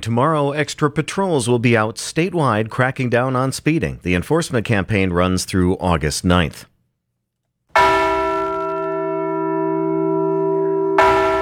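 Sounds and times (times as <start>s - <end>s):
speech: 0.0s - 6.7s
North Dakota's Liberty Bell replica being rung at the Heritage Center in Bismarck: 7.8s - 11.3s.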